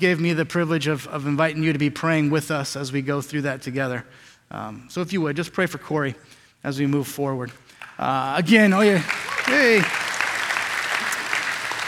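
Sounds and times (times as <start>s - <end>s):
speech: 0.0s - 10.0s
audience clapping: 7.7s - 11.8s.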